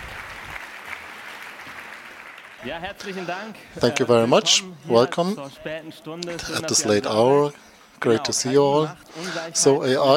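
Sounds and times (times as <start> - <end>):
audience applause: 0.0 - 3.4
speech: 2.6 - 10.1.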